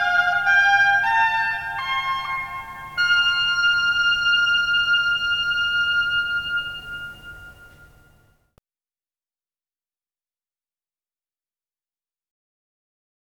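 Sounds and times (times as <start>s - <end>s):
oboe playing variations: 0.0s - 8.3s.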